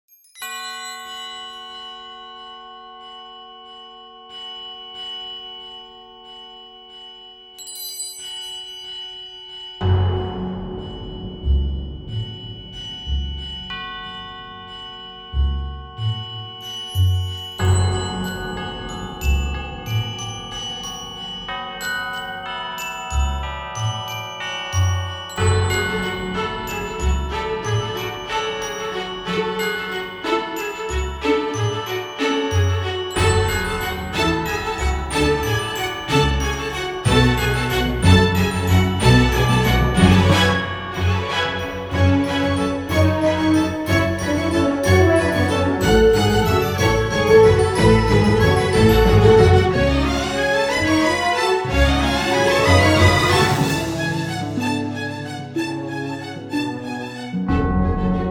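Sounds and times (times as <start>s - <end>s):
instrumental Christmas carol: 0.2s - 58.2s.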